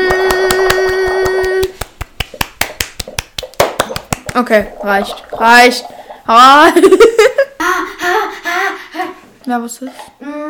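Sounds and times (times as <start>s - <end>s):
people clapping hands: 0.0s - 4.4s
speech: 4.4s - 8.7s, 9.5s - 10.4s.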